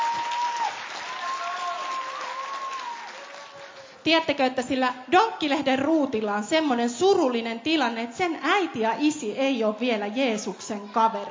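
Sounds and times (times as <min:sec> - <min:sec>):
group clapping: 0:00.0 - 0:04.0
speech: 0:04.0 - 0:11.2.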